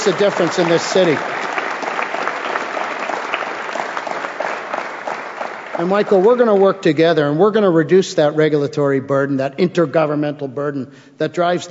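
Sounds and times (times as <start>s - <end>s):
speech: 0.0s - 1.6s, 5.8s - 11.6s
audience applause: 0.0s - 6.8s.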